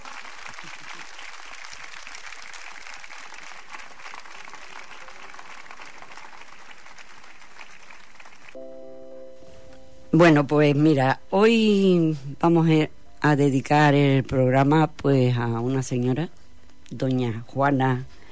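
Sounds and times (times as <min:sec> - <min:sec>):
audience applause: 0:00.0 - 0:08.6
speech: 0:10.2 - 0:18.2.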